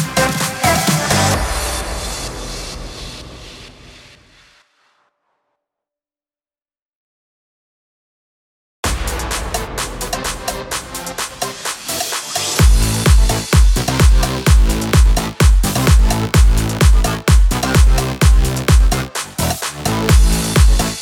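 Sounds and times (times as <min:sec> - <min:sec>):
electro house beat at 128 BPM: 0:00.0 - 0:03.6, 0:08.9 - 0:20.9.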